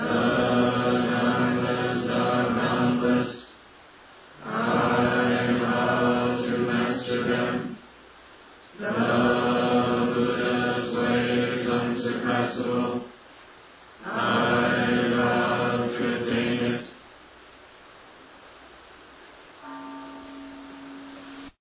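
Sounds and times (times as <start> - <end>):
end chant: 0.0 - 3.6, 4.4 - 7.9, 8.7 - 13.2, 14.0 - 17.0.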